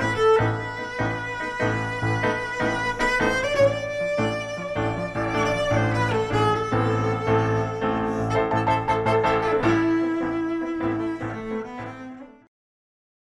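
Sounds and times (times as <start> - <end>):
cello in a backing track: 0.0 - 12.5
piano in a backing track: 0.0 - 12.5.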